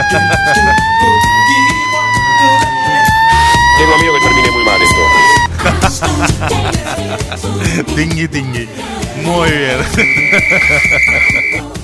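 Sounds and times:
sirens wailing: 0.0 - 5.5, 10.0 - 11.6
speech: 0.1 - 1.3, 3.8 - 11.5
laughter: 5.0 - 8.0, 9.7 - 11.6.

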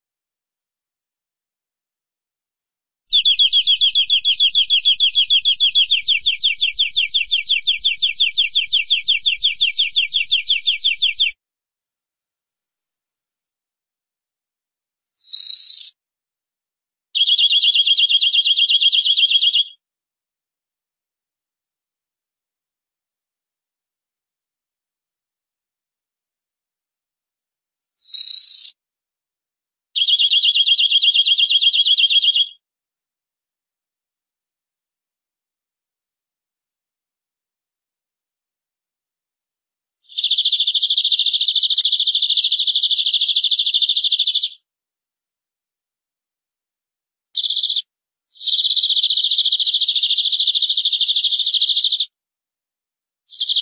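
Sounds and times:
canary song: 3.1 - 11.4, 15.3 - 15.9, 17.2 - 19.8, 30.0 - 32.6, 40.1 - 44.6, 47.4 - 47.8, 48.4 - 52.0.

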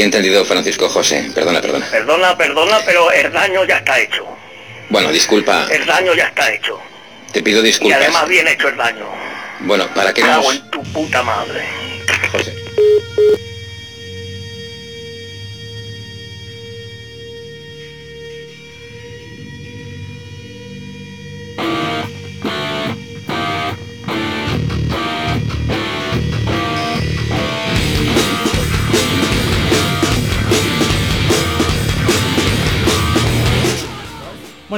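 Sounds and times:
speech: 0.0 - 12.4
mobile phone ringing: 12.7 - 13.4
loud dense song with heavy beat and distorted instruments: 21.8 - 34.7.

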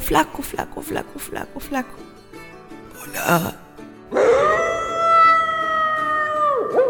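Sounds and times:
speech: 0.1 - 2.2, 3.0 - 3.6
wolf howling: 4.1 - 6.8.

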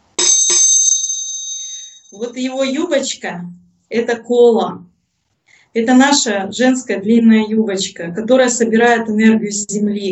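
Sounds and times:
small hand bell ringing: 0.1 - 2.6
speech: 2.1 - 4.9, 5.8 - 10.1.

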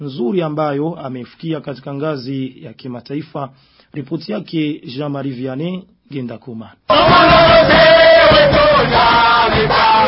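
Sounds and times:
speech: 0.0 - 10.0
crowd cheering and ululating at Melchior Ndadaye International Airport in Bujumbura: 6.9 - 10.0.

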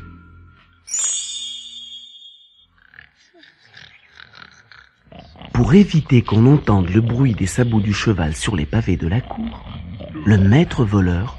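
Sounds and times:
bright ringing tone: 0.0 - 2.8
captain and companions snoring after emptying a barrel of wine: 2.8 - 11.3
speech: 5.6 - 11.3.

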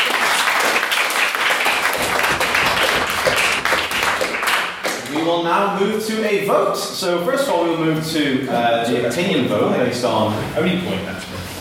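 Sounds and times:
audience applause for debate speakers: 0.0 - 5.2
speech: 5.2 - 11.5.

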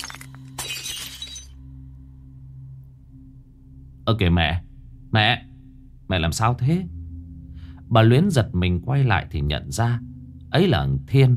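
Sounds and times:
ceramic offering rice bowl falling and shattering on the floor: 0.0 - 1.6
steady low hum: 1.2 - 11.3
speech: 4.1 - 5.5, 6.1 - 7.0, 7.9 - 11.3.

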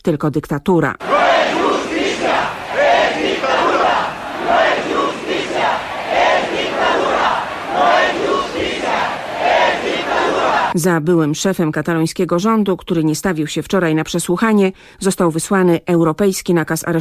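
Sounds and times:
speech: 0.0 - 1.2, 10.8 - 17.0
protest crowd chanting outside parliament: 1.0 - 10.8.

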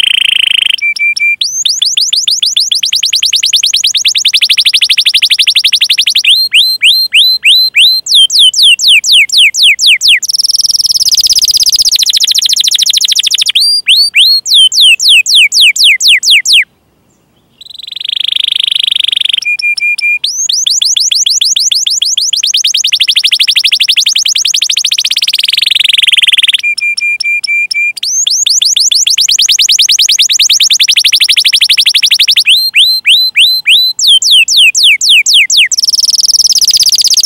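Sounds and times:
canary singing: 0.0 - 37.2.

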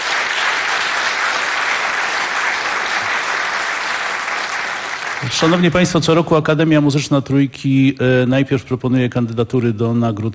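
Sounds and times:
audience applause at an awards event: 0.0 - 6.0
speech: 5.2 - 10.3.

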